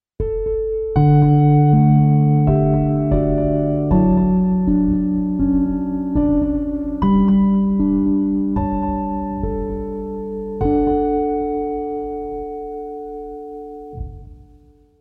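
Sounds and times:
Arturia V Collection X CP-70 electric grand piano: 0.2 - 14.9.

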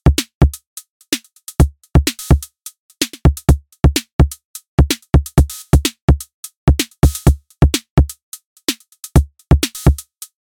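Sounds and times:
Roland TR-606 drum machine: 0.0 - 10.4.

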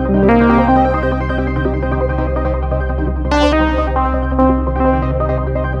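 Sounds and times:
synth arpeggio: 0.0 - 2.0, 3.3 - 5.7.

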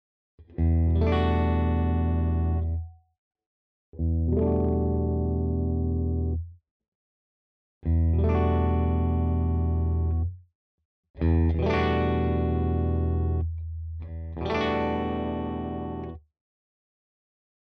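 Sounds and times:
Ibanez AZ SDB electric guitar clean tone: 0.4 - 2.9, 4.0 - 6.4, 7.9 - 10.3, 11.2 - 16.2.

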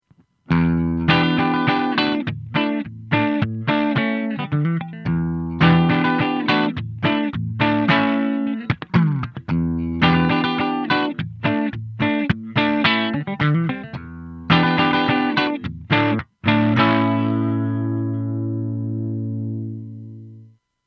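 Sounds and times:
clean electric guitar through preamp: 0.5 - 20.6.

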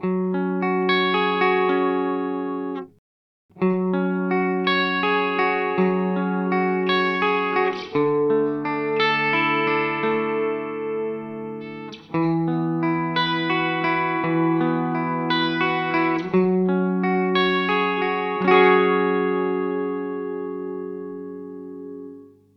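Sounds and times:
Earthquaker Devices Ledges room reverb pedal effect: 0.0 - 2.9, 3.6 - 22.5.

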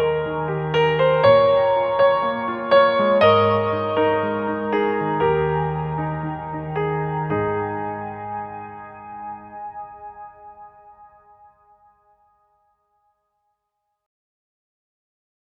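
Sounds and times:
Nord Grand upright piano with shimmer effect: 0.0 - 11.5.

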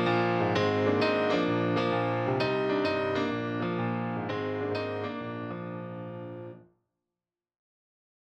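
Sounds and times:
Nord Grand piano compressed pop: 0.0 - 6.6.

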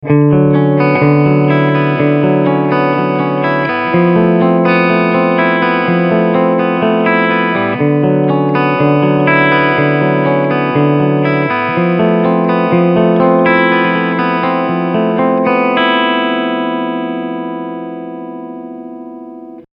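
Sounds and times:
clean guitar picking on bridge humbucker: 0.0 - 19.7.

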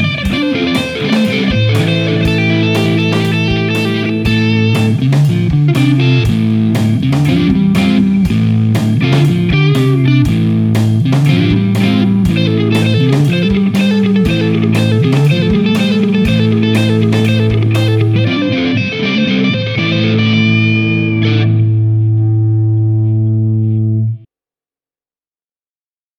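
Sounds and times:
Fender American Original 60 Jazzmaster electric guitar on neck pickup: 0.0 - 24.3.

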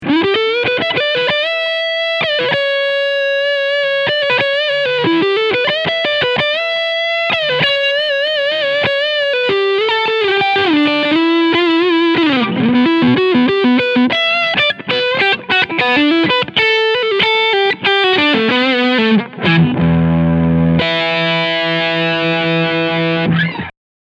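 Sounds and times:
electric guitar lead on front pickup: 0.0 - 23.7.

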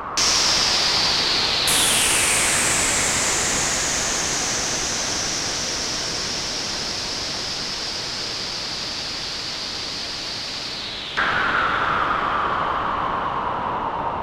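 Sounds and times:
falling noise made with Novation PEAK: 0.2 - 14.1.

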